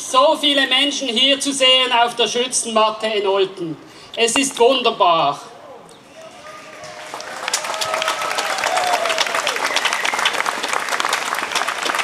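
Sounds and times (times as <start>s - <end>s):
speech: 0.1s - 5.5s
crowd applause at demonstration: 6.1s - 12.0s.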